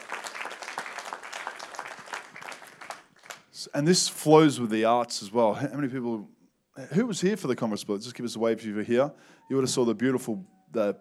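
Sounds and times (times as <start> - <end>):
audience applause: 0.0 - 3.4
speech: 3.6 - 10.9.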